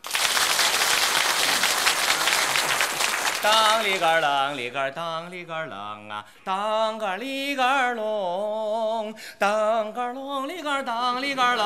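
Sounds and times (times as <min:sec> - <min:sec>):
audience applause: 0:00.0 - 0:04.6
speech: 0:03.4 - 0:11.6.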